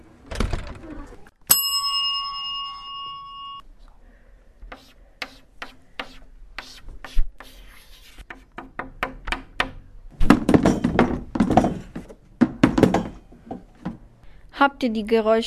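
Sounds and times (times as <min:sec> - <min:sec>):
classroom stop bell ding: 0:01.5 - 0:03.6
chalk tapping and clicking on a classroom blackboard: 0:04.7 - 0:09.8
classroom chairs being shifted: 0:10.2 - 0:12.2
speech: 0:14.8 - 0:15.4.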